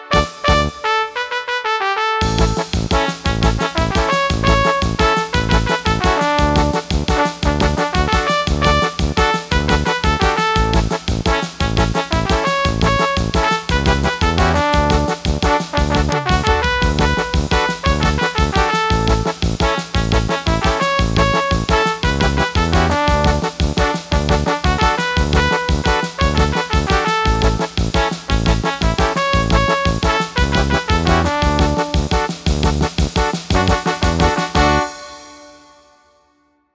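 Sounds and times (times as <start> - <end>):
electronic banda music: 0.1 - 1.3, 2.2 - 35.9.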